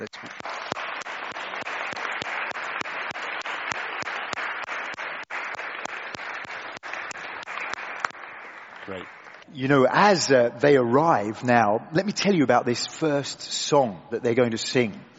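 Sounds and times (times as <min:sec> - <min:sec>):
audience applause: 0:00.0 - 0:10.2
speech: 0:08.9 - 0:15.1.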